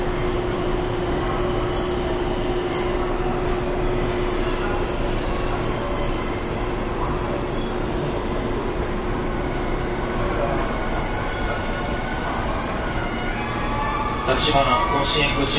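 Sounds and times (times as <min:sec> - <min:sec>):
JR West Series 207 train rumbling on the Kobe Line: 0:00.0 - 0:15.5.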